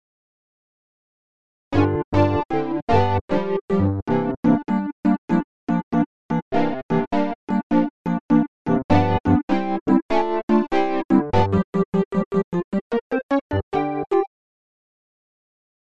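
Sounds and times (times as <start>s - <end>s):
electric piano loops: 1.8s - 5.8s, 6.5s - 12.6s, 13.5s - 14.3s.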